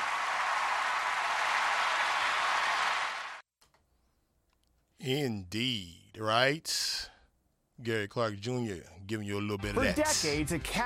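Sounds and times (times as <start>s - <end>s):
audience applause: 0.0s - 3.4s
speech: 5.0s - 7.1s, 7.8s - 10.8s.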